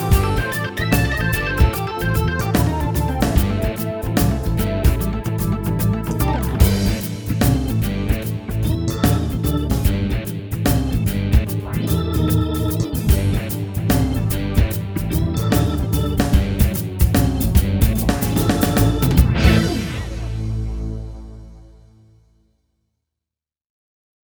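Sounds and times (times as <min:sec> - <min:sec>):
rock organ: 0:00.0 - 0:20.5.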